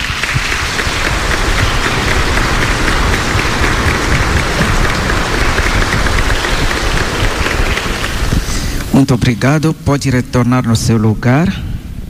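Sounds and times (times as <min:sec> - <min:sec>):
audience applause: 0:00.0 - 0:09.4
speech: 0:09.0 - 0:11.6.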